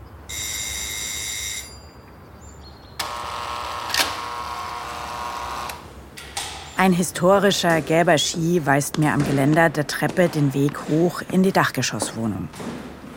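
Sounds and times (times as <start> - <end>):
electric doorbell buzzing: 0.3 - 2.0, 3.0 - 5.9
speech: 6.8 - 12.9.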